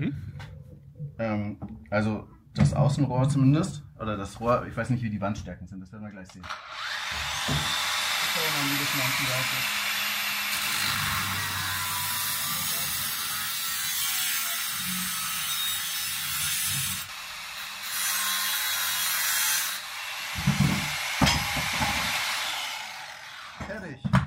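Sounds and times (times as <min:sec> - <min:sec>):
speech: 0:01.2 - 0:07.8, 0:08.4 - 0:09.8
angle grinder cutting through steel frame: 0:06.4 - 0:23.8.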